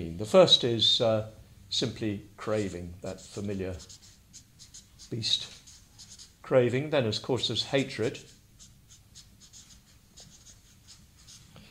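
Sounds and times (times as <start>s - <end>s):
speech: 0.0s - 4.1s, 5.1s - 5.6s, 6.5s - 8.3s
pen scratching as something is written by hand: 3.1s - 6.4s, 7.6s - 11.4s.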